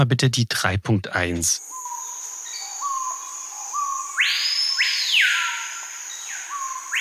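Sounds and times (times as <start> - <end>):
speech: 0.0 - 1.8
tropical blackbird singing: 1.2 - 6.9
high insect-like tone: 1.6 - 6.9.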